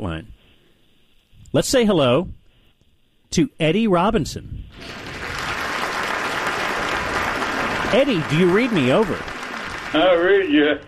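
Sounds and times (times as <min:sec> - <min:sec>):
speech: 0:00.0 - 0:00.4, 0:01.5 - 0:02.4, 0:03.3 - 0:05.1, 0:07.9 - 0:09.3, 0:09.9 - 0:10.8
applause sound effect: 0:04.7 - 0:10.8.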